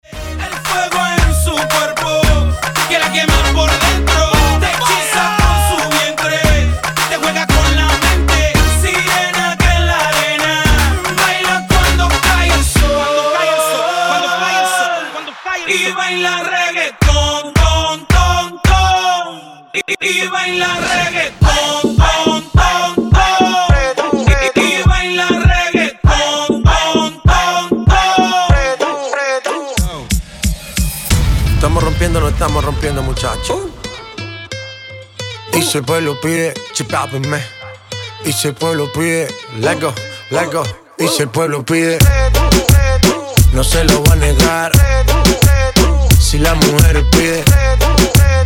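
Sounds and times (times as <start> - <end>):
reggaeton music: 0.0 - 48.4.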